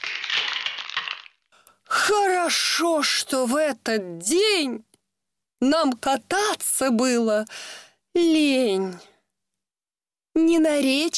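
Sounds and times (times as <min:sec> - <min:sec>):
river ice cracking: 0:00.0 - 0:01.5
speech: 0:02.1 - 0:04.9, 0:05.6 - 0:09.1, 0:10.4 - 0:11.1.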